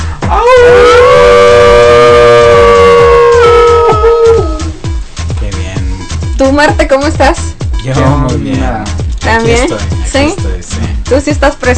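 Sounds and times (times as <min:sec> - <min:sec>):
low pulsing beat: 0:00.0 - 0:11.7
wolf howling: 0:00.3 - 0:04.8
speech: 0:06.6 - 0:10.5, 0:11.1 - 0:11.7.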